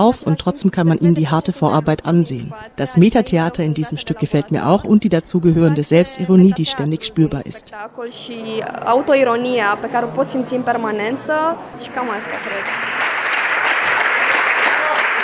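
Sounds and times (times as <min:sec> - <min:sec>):
voice speaking or singing: 0:00.0 - 0:07.8
speech: 0:00.0 - 0:13.1
theatre audience standing ovation: 0:11.8 - 0:15.2.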